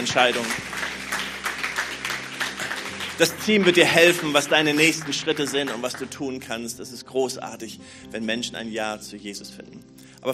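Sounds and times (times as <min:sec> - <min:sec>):
speech: 0:00.0 - 0:00.7, 0:03.2 - 0:10.3
audience applause: 0:00.0 - 0:06.2.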